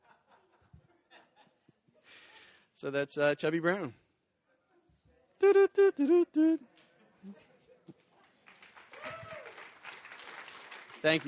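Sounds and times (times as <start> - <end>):
speech: 2.8 - 4.0, 5.5 - 7.4, 11.0 - 11.2
audience applause: 8.4 - 11.2.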